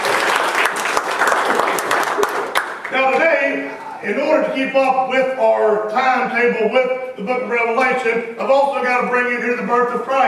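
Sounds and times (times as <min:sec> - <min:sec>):
church congregation applauding: 0:00.0 - 0:03.2
speech: 0:04.0 - 0:10.2.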